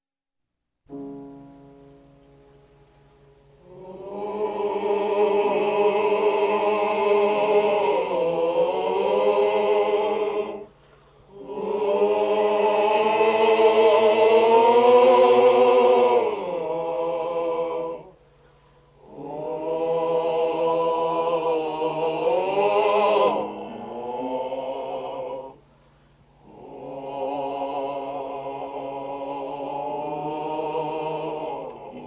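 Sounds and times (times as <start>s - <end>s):
people singing a chanson: 3.6s - 18.3s, 18.9s - 32.0s.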